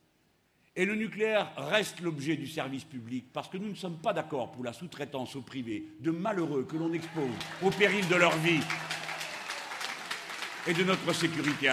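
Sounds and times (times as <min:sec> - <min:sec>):
speech: 0:00.8 - 0:09.0, 0:10.6 - 0:11.7
audience applause at a rally: 0:07.0 - 0:11.7.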